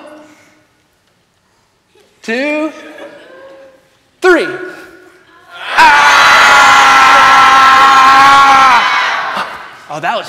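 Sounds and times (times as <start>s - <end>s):
speech: 2.3s - 2.9s, 4.4s - 4.6s
laughter: 2.4s - 4.0s
group of voices in loud collective yell: 5.5s - 9.8s.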